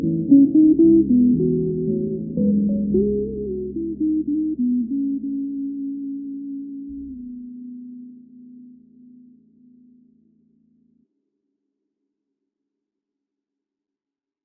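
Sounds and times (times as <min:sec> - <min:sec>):
low-pass filtered theme music: 0:00.0 - 0:08.5.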